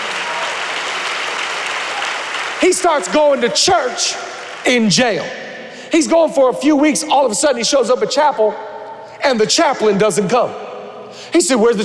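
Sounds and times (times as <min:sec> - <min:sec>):
audience clapping: 0:00.0 - 0:05.1
speech: 0:02.6 - 0:10.7, 0:11.3 - 0:11.8.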